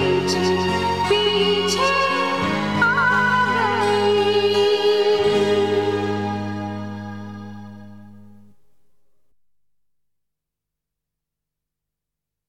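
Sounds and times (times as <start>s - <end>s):
instrumental music: 0.0s - 9.4s.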